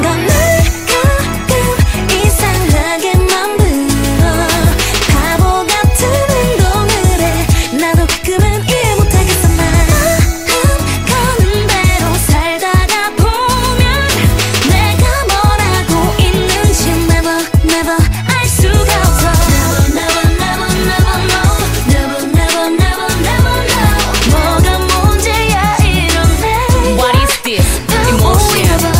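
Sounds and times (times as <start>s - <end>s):
emotional chorus: 0.0s - 28.9s.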